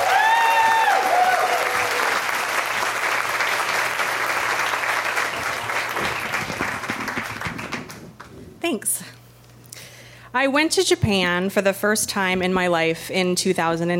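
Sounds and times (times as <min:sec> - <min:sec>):
audience applause: 0:00.0 - 0:08.3
speech: 0:10.4 - 0:13.9.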